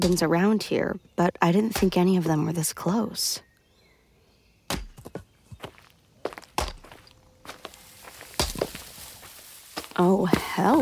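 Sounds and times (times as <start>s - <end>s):
axe splitting logs: 0.0s - 0.3s, 1.7s - 2.0s, 4.7s - 5.2s, 6.5s - 7.0s, 8.3s - 8.8s
speech: 0.0s - 3.5s, 10.0s - 10.8s.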